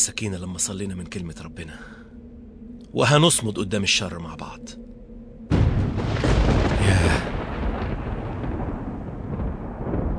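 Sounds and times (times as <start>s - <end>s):
speech: 0.0s - 2.1s, 2.9s - 4.9s
thunder from a lightning strike rumbling: 5.3s - 10.1s.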